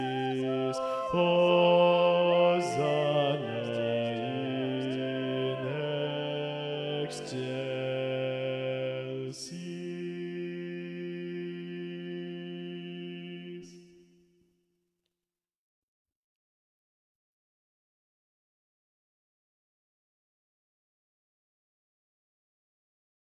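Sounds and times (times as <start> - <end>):
schola choir singing a mass movement with prominent bass: 0.0 - 13.8.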